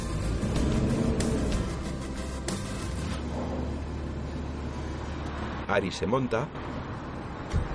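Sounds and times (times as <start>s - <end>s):
car engine accelerating: 0.0s - 5.6s
speech: 5.7s - 6.8s.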